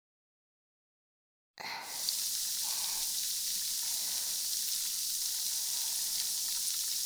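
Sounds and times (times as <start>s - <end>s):
carbonated water poured, bubbles fizzing: 1.8s - 7.0s.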